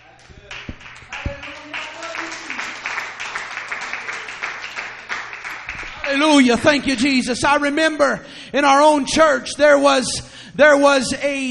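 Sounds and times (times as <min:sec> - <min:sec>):
audience clapping: 0:00.1 - 0:07.4
speech: 0:06.1 - 0:11.4.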